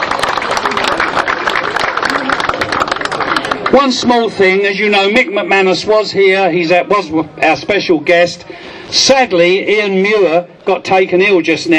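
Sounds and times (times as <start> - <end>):
audience clapping steadily, many hands: 0.0 - 4.1
speech: 3.7 - 11.7.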